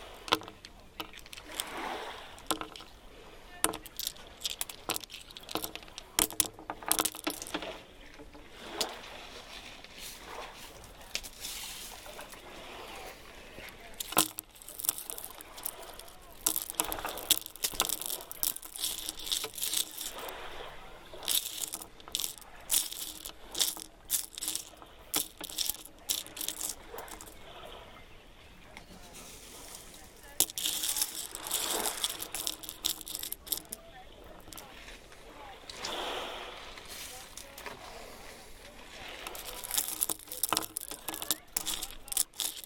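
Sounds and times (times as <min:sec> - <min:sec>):
stones performance on a groyne: 0:00.1 - 0:09.3, 0:10.1 - 0:13.0, 0:13.6 - 0:27.7, 0:28.9 - 0:35.9, 0:36.9 - 0:38.1, 0:38.9 - 0:42.6.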